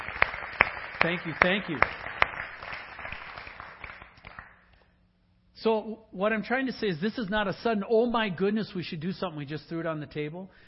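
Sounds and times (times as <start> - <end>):
audience applause: 0.0 - 4.5
speech: 1.0 - 2.1, 5.6 - 10.6.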